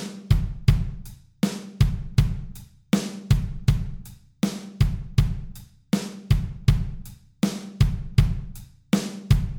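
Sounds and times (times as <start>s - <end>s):
drum beat: 0.0s - 9.5s.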